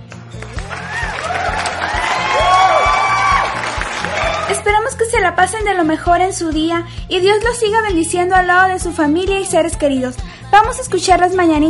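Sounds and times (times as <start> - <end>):
crowd applauding and cheering: 0.0 - 4.8
speech: 4.9 - 11.6.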